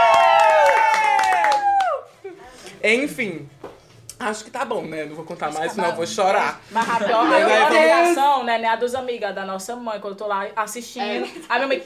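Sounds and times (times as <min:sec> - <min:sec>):
audience clapping and cheering: 0:00.0 - 0:02.2
speech: 0:02.8 - 0:03.6, 0:04.2 - 0:11.8.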